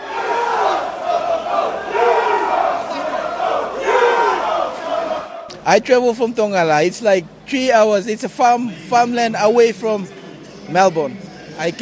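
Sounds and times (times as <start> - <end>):
soccer fans chanting in unison: 0.0 - 5.6
speech: 5.7 - 11.8.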